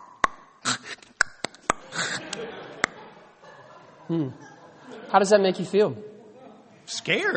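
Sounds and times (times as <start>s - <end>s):
person imitating a guinea pig's clicking hiss: 0.7s - 1.1s, 1.8s - 2.4s
laughter: 1.8s - 5.5s
speech: 4.1s - 4.5s, 5.1s - 6.1s, 6.9s - 7.3s.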